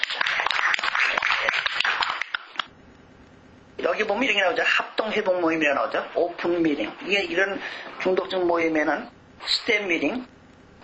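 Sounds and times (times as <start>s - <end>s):
audience applause: 0.0s - 2.7s
speech: 3.9s - 10.4s.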